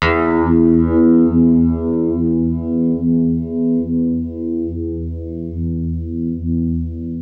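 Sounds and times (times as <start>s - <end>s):
guitar playing E with Univibe effect: 0.0s - 7.2s.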